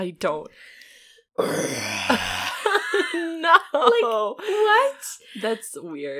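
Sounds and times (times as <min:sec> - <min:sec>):
speech: 0:00.0 - 0:00.8, 0:01.4 - 0:06.1
person imitating a bear growl: 0:01.4 - 0:02.6.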